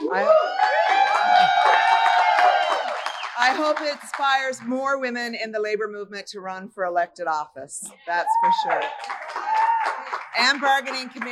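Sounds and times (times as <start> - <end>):
wild applause: 0.0 - 3.9, 8.3 - 11.3
crowd cheering: 0.0 - 4.2, 8.0 - 11.3
speech: 0.1 - 0.4, 3.4 - 9.2, 10.4 - 11.3.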